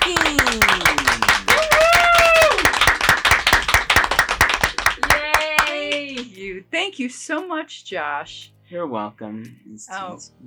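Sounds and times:
applause and clapping: 0.0 - 6.4
speech: 6.8 - 10.4.

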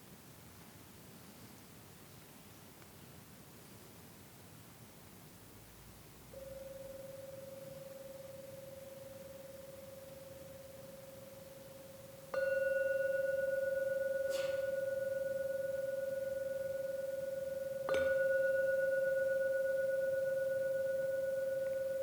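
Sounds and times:
gong ringing: 12.4 - 21.9.

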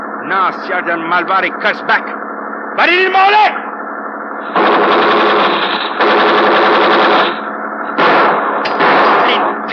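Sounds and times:
speech: 0.2 - 2.2, 2.8 - 3.6, 4.4 - 5.9
automatic gunfire: 4.5 - 9.6.

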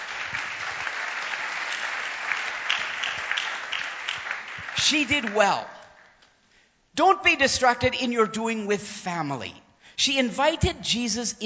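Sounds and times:
congregation applause during a church sermon: 0.0 - 6.2
speech: 4.8 - 5.8, 7.0 - 11.4.

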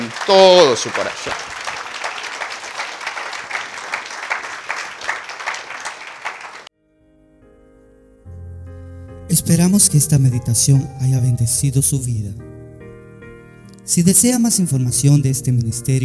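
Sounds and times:
audience applause: 0.0 - 6.7
speech: 0.2 - 1.5, 9.4 - 12.6, 13.9 - 16.0.

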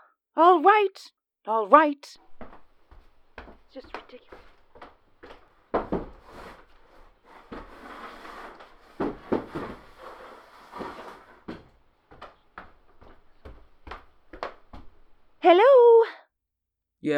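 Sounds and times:
speech: 0.4 - 2.3, 3.7 - 4.5, 15.4 - 15.9
chair scraping and dragging across the floor: 2.2 - 15.4
wooden knocks and clicks of a chair settling: 2.4 - 15.4.

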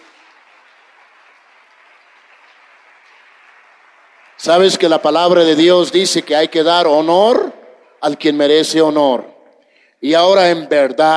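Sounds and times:
audience applause: 0.0 - 6.4
speech: 4.4 - 9.3, 10.0 - 11.1.

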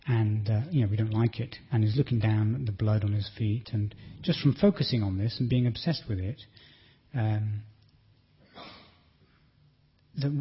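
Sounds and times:
speech: 0.1 - 7.7, 10.2 - 10.3
breathing into a microphone: 3.9 - 4.3, 6.5 - 7.1.

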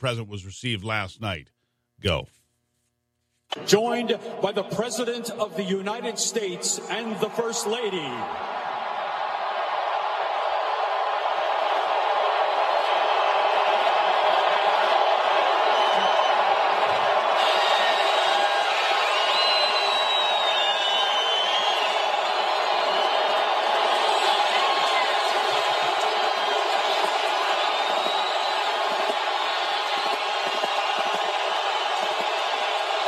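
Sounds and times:
speech: 0.0 - 2.4, 3.5 - 8.6
crowd applauding and cheering an arrival in New Orleans: 6.9 - 33.0.

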